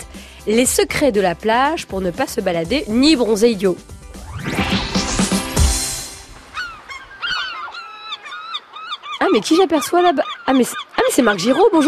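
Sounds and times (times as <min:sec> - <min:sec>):
speech: 0:00.4 - 0:03.9, 0:09.4 - 0:11.8
rising whoosh: 0:04.0 - 0:07.2
large gull calling: 0:06.4 - 0:11.8.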